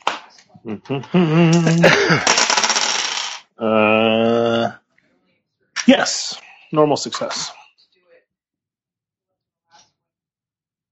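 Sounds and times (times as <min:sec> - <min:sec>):
speech: 0:00.6 - 0:02.4, 0:03.6 - 0:04.2, 0:05.9 - 0:07.6
dice being rolled: 0:01.5 - 0:03.5.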